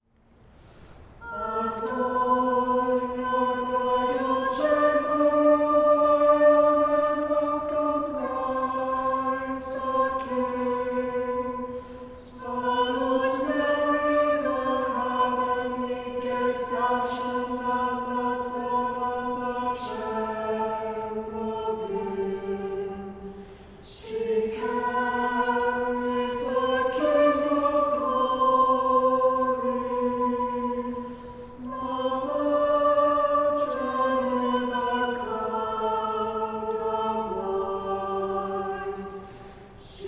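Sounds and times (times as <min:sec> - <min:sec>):
Kievan chant in unison: 0:00.7 - 0:40.0.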